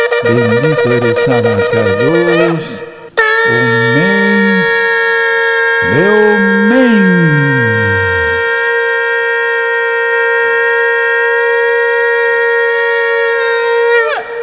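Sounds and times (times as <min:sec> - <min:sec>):
shofar blowing: 0:00.0 - 0:14.4
speech: 0:00.2 - 0:02.9, 0:03.5 - 0:04.3, 0:05.8 - 0:06.3
people shouting with joy: 0:03.5 - 0:04.7, 0:05.8 - 0:08.5.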